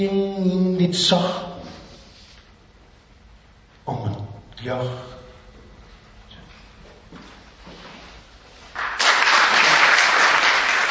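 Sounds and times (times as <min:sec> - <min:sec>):
speech: 0:00.0 - 0:01.5, 0:04.6 - 0:05.2
audience applause: 0:08.8 - 0:10.8.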